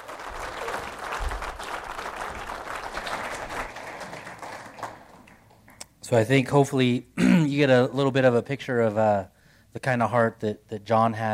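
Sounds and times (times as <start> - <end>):
crowd applauding for graduates: 0.0 - 5.8
speech: 6.1 - 11.3.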